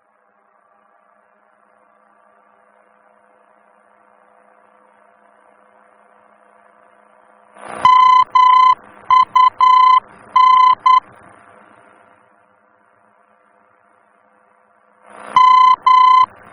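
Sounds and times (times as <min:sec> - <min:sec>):
VOR aerobeacon signal in Germany: 0:07.7 - 0:11.1, 0:15.1 - 0:16.5.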